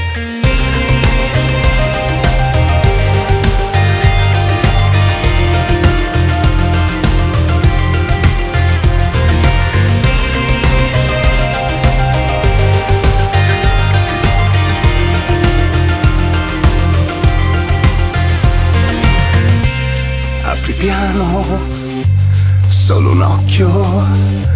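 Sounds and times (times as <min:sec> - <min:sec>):
electro hardcore music: 0:00.0 - 0:24.5.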